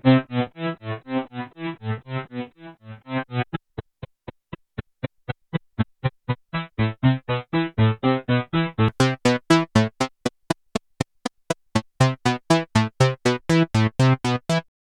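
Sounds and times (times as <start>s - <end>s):
attack decay synthesizer: 0.0s - 3.6s, 6.6s - 10.1s, 11.8s - 14.7s.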